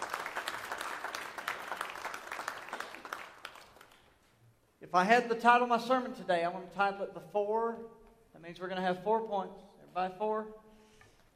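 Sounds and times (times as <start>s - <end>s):
crowd clapping: 0.0s - 4.2s
speech: 4.9s - 10.6s.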